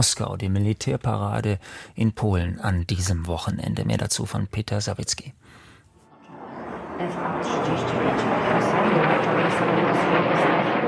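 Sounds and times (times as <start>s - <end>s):
speech: 0.0s - 5.4s, 7.0s - 10.5s
F-35 fighter jets roaring over central Warsaw: 6.1s - 10.8s.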